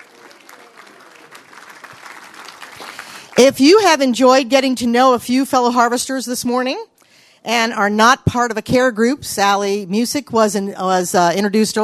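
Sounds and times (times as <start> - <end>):
crowd clapping: 0.0 - 3.9
speech: 3.4 - 11.8.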